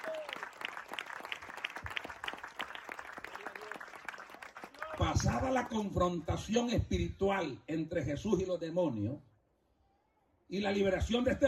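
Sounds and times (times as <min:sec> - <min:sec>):
audience applauding: 0:00.0 - 0:05.8
speech: 0:05.0 - 0:09.3, 0:10.5 - 0:11.4.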